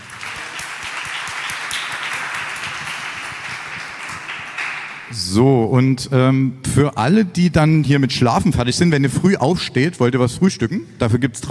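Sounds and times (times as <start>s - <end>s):
audience applause: 0.0s - 5.1s
speech: 5.1s - 11.5s.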